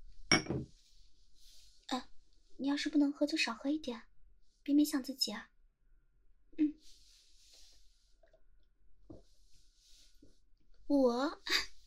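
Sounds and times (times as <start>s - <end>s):
glasses clinking in a toast: 0.3s - 0.6s
speech: 2.6s - 4.1s, 4.7s - 5.5s, 10.9s - 11.6s.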